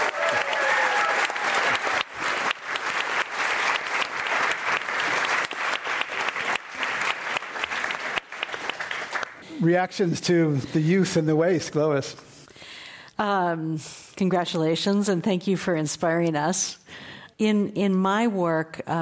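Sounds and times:
audience applause at a climate change panel event: 0.0 - 9.4
speech: 9.6 - 12.3, 13.2 - 19.0.

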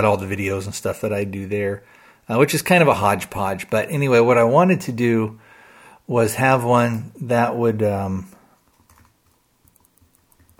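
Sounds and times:
speech: 0.0 - 5.4, 6.1 - 8.4
typing on a computer keyboard: 8.7 - 10.5.

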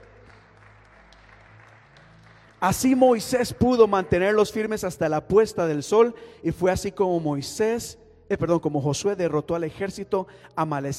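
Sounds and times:
audience applauding: 0.0 - 4.0
speech: 2.6 - 10.9.

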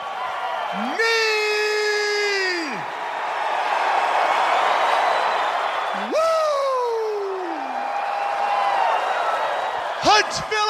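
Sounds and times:
packed wrestling arena crowd cheering: 0.0 - 10.6
speech: 0.7 - 1.2
single loud voice whooping: 0.7 - 2.8, 5.9 - 7.8.

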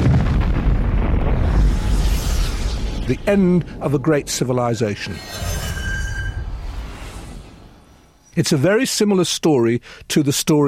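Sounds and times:
planet Krypton exploding in a Superman film: 0.0 - 7.9
speech: 3.1 - 5.6, 8.4 - 10.6.

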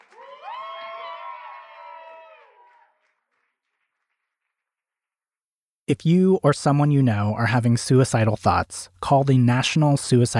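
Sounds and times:
audience cheering with whoops and shouting: 0.0 - 3.1
speech: 5.9 - 10.3.

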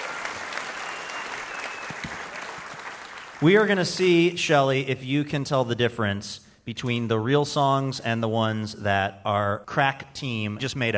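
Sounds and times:
audience applause: 0.0 - 4.2
speech: 3.4 - 10.9.

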